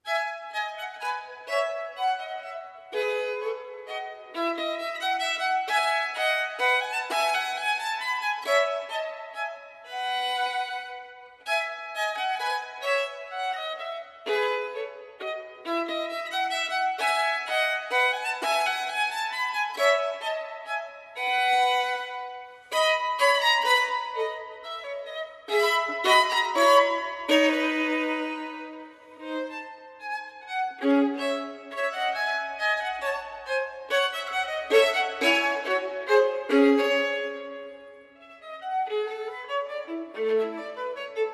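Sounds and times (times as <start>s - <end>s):
solo violin minuet in E major: 0.0s - 41.3s.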